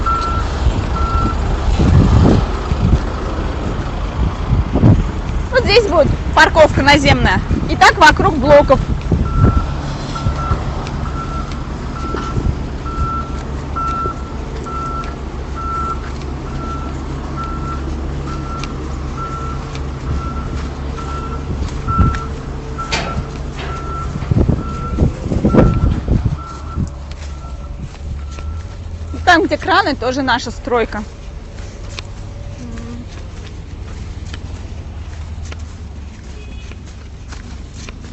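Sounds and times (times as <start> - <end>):
construction site truck reversing alarm beeping: 0.0 - 1.5, 7.9 - 31.5
low diesel rumble: 0.0 - 38.1
speech: 5.7 - 8.9, 29.5 - 31.2
metal clanks: 22.8 - 24.4.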